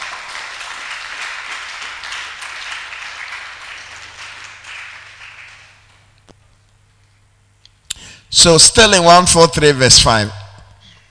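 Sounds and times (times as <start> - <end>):
audience clapping: 0.0 - 6.2
speech: 8.3 - 10.4.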